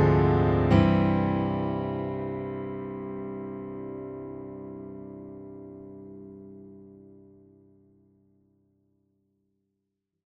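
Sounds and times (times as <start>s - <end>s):
solo theme melody: 0.0s - 7.3s.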